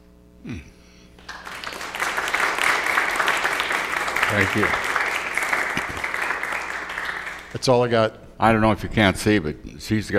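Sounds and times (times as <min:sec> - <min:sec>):
round of applause: 0:01.2 - 0:07.7
speech: 0:04.4 - 0:04.9, 0:07.6 - 0:10.1.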